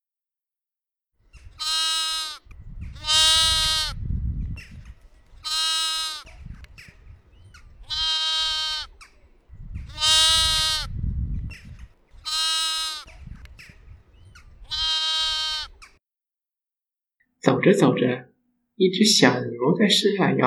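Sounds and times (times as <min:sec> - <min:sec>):
lamb bleating: 0:01.4 - 0:04.0, 0:04.7 - 0:09.2, 0:09.8 - 0:11.0, 0:11.6 - 0:13.7, 0:14.3 - 0:15.9
speech: 0:17.6 - 0:20.4.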